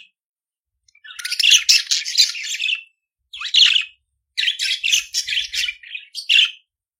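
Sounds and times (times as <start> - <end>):
budgerigar warbling: 1.0 - 2.8, 3.3 - 6.4.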